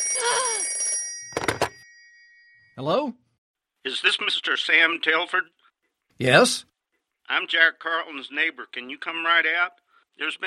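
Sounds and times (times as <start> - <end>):
old-style telephone bell ringing: 0.0 - 2.7
speech: 2.8 - 3.2, 3.8 - 5.6, 6.2 - 6.7, 7.3 - 10.4.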